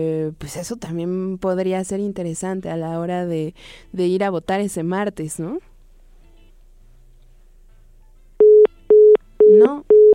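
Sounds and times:
speech: 0.0s - 5.7s, 9.6s - 9.9s
busy tone after a dropped phone call: 8.4s - 10.1s.

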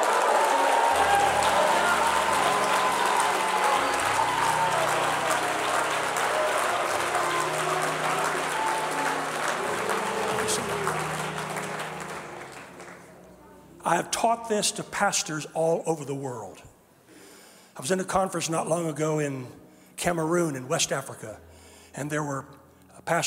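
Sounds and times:
audience cheering: 0.0s - 13.0s
speech: 13.9s - 16.7s, 17.8s - 23.2s.

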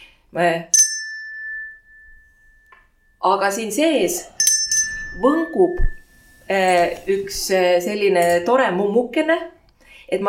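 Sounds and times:
speech: 0.3s - 0.8s, 3.2s - 4.4s, 5.2s - 10.2s
small hand bell ringing: 0.7s - 3.2s, 4.2s - 6.7s.

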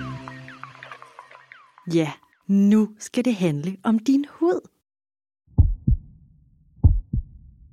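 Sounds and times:
speech: 1.9s - 4.7s
heart beating: 5.5s - 6.1s, 6.8s - 7.7s.

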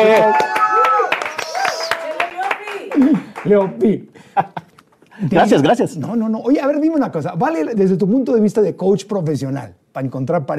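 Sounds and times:
speech: 0.0s - 0.4s, 3.5s - 4.6s, 5.2s - 10.5s
audience applause: 0.0s - 3.8s.

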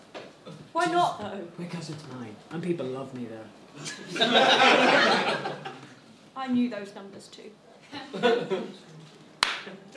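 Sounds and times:
speech: 0.8s - 5.7s, 6.4s - 8.9s
laughter: 3.9s - 6.0s, 7.9s - 8.8s
slow clap: 9.4s - 9.8s.

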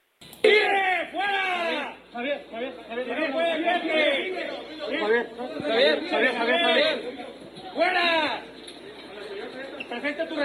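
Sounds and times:
crowd shouting at arriving football players: 0.4s - 7.0s
speech: 2.2s - 7.2s, 7.8s - 8.4s, 9.9s - 10.4s.

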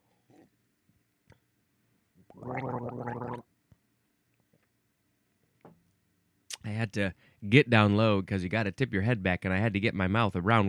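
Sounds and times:
gargling water: 2.3s - 3.4s
speech: 6.9s - 10.6s.

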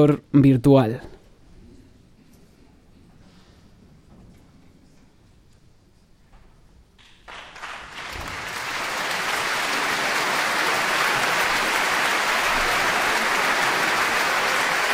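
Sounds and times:
speech: 0.0s - 1.1s
concert audience applause: 7.0s - 14.9s.

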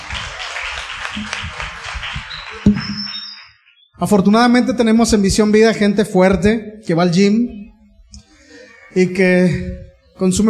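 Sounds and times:
audience applause: 0.0s - 3.5s
speech: 1.2s - 1.4s, 4.0s - 7.6s, 9.0s - 10.4s.

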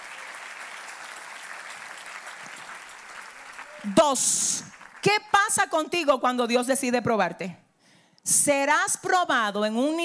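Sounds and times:
audience applause: 0.0s - 5.1s
speech: 3.8s - 7.6s, 8.2s - 10.0s.

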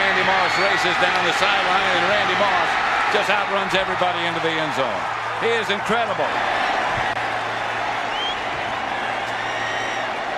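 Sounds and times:
stadium crowd cheering: 0.0s - 10.3s
speech: 0.6s - 6.7s.

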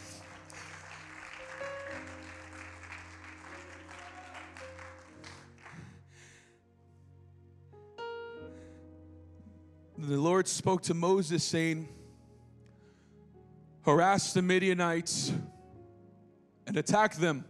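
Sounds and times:
church audience clapping hands: 0.0s - 6.0s
speech: 10.0s - 12.0s, 13.9s - 15.5s, 16.7s - 17.4s.

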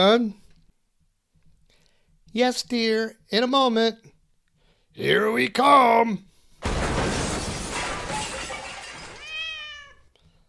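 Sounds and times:
speech: 0.0s - 0.4s, 2.3s - 4.1s, 5.0s - 6.7s
door being broken down: 6.6s - 9.6s.

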